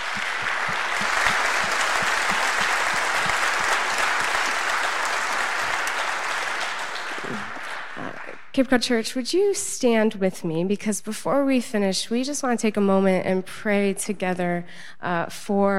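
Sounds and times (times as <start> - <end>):
large audience applause: 0.0 - 8.5
speech: 8.6 - 15.7.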